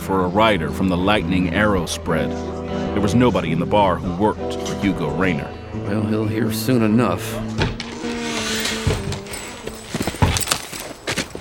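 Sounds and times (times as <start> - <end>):
speech: 0.1 - 7.6
horses galloping off: 7.7 - 11.3.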